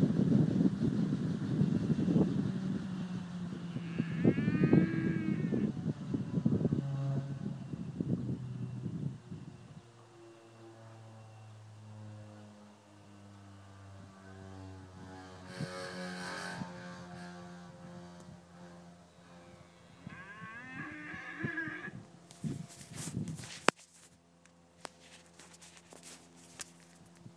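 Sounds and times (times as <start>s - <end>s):
wind turbine turning: 0.0s - 10.0s, 13.6s - 27.3s.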